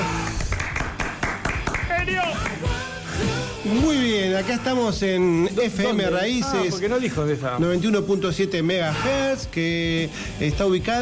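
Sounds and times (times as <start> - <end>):
applause: 0.0 - 2.7
speech: 3.7 - 11.0.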